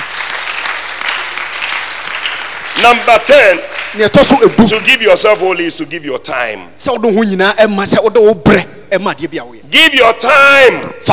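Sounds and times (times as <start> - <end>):
audience clapping: 0.0 - 4.9
speech: 2.8 - 11.1.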